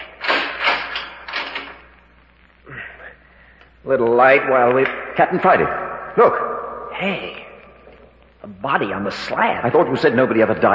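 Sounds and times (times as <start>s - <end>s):
door rattling and scraping open: 0.0s - 1.8s
speech: 3.8s - 7.4s, 8.4s - 10.7s.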